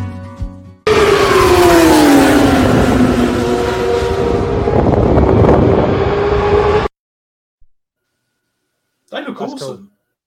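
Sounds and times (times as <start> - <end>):
BCV8 racing car engines roaring: 0.9 - 6.9
rushing wind-like noise: 0.9 - 6.9
person speaking: 9.1 - 9.9.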